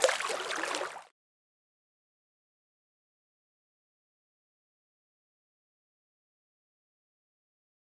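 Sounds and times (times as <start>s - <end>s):
pool sound: 0.0s - 1.1s.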